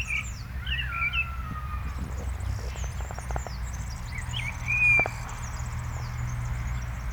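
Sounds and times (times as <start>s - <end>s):
Common blackbird fluty phrases: 0.2s - 5.4s
other birds high thin twittering: 1.3s - 7.0s.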